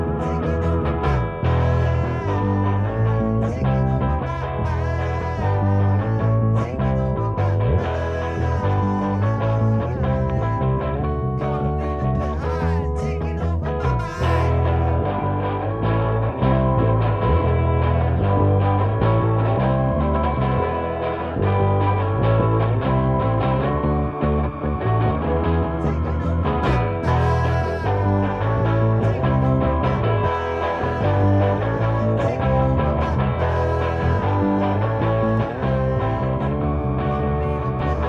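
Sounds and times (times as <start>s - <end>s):
bass keys: 0.0s - 38.0s.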